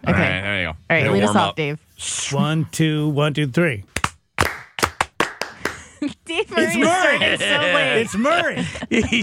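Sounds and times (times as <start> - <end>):
speech: 0.9 - 3.9, 6.6 - 9.2
group clapping in unison: 3.9 - 6.0
people laughing: 5.8 - 9.2.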